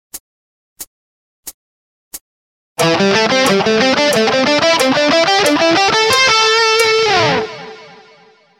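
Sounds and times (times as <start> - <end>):
pentatonic guitar: 2.8 - 8.5.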